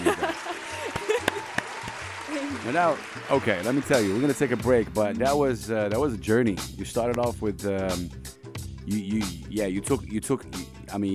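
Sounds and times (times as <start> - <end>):
laughter: 0.0 - 1.6
round of applause: 0.0 - 5.0
speech: 2.7 - 11.1.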